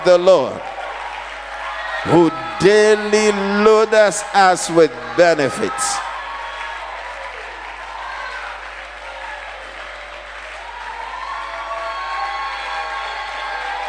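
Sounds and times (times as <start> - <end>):
speech: 0.0 - 0.7, 2.0 - 6.1
audience clapping and shouting: 0.0 - 13.8.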